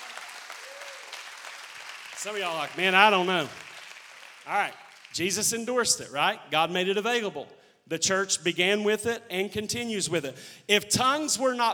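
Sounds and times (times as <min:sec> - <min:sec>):
audience applause: 0:00.0 - 0:05.4
speech: 0:02.2 - 0:03.6, 0:04.5 - 0:11.7.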